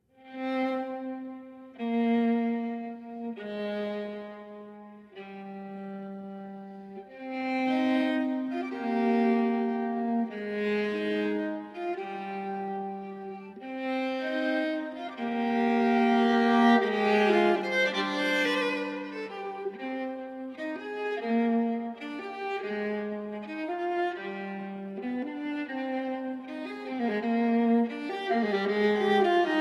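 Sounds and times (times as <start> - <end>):
passacaglia arranged for viola: 0.0 - 29.5.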